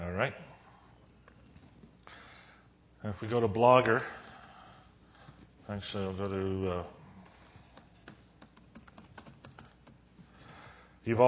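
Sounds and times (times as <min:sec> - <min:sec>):
speech: 0:00.2 - 0:00.4, 0:03.0 - 0:04.2, 0:05.7 - 0:07.0, 0:11.1 - 0:11.2
typing on a computer keyboard: 0:04.1 - 0:04.5, 0:07.2 - 0:10.0.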